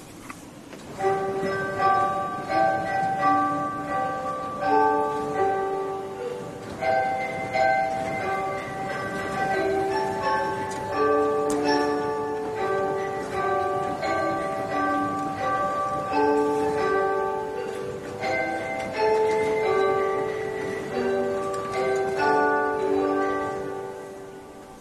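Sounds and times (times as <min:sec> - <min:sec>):
church organ's bar glockenspiel playing in the Marienkirche: 0:01.0 - 0:24.8.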